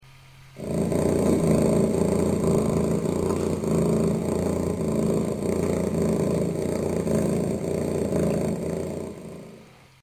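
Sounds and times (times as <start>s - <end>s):
purr: 0.6s - 10.0s.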